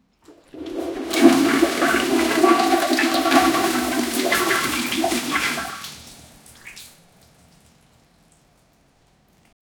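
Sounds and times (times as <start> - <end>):
vacuum cleaner hoovering a flooded bathroom: 0.3 - 6.9.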